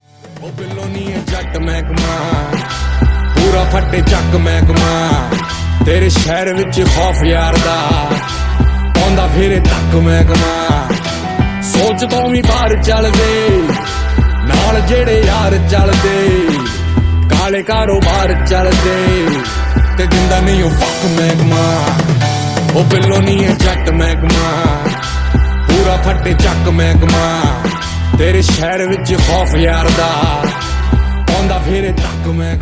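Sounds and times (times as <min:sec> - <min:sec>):
Punjabi song ringtone: 0:00.2 - 0:32.6.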